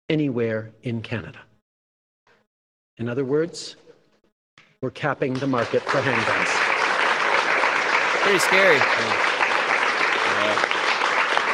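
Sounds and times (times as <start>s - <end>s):
speech: 0.1s - 1.5s, 3.0s - 3.8s, 4.8s - 6.6s, 8.2s - 9.4s, 10.4s - 10.7s
crowd clapping: 5.2s - 11.5s.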